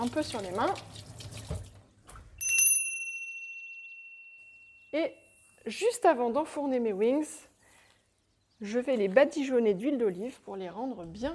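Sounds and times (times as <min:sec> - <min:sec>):
speech: 0:00.0 - 0:01.2, 0:04.9 - 0:07.5, 0:08.6 - 0:11.3
washing hands under running tap water: 0:00.0 - 0:02.3.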